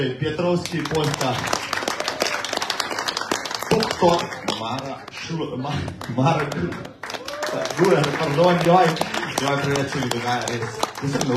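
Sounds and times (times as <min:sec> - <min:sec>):
speech: 0:00.0 - 0:01.6, 0:04.0 - 0:11.3
audience applause: 0:00.6 - 0:11.3.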